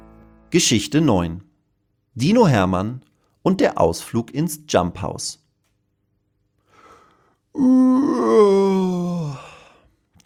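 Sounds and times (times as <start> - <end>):
speech: 0.5 - 1.5, 2.2 - 5.4, 7.6 - 8.9
voice imitating howling wind: 7.6 - 9.4.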